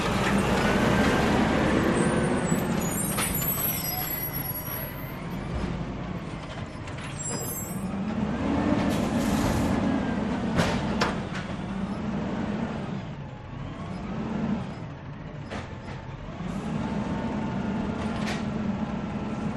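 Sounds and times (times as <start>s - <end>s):
garbage truck approaching: 0.0s - 19.5s.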